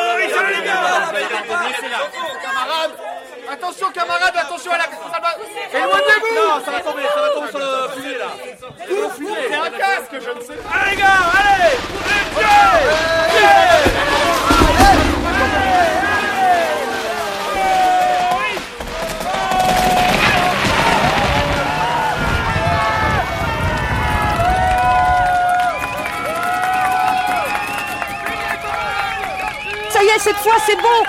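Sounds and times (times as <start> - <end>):
jubilant crowd cheering and shouting: 0.0 - 4.2, 4.9 - 31.0
speech: 30.2 - 31.0.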